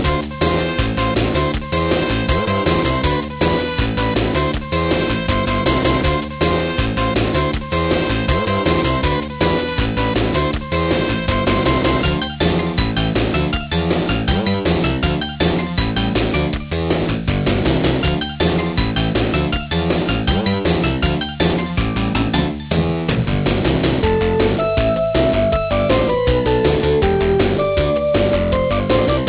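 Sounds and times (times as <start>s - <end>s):
toilet music: 0.0s - 29.2s.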